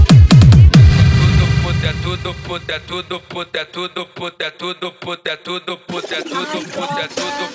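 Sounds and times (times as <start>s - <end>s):
hitting sound: 0.1s - 3.2s.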